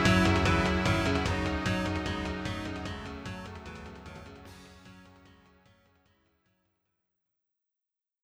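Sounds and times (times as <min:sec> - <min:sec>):
battle music: 0:00.0 - 0:04.9.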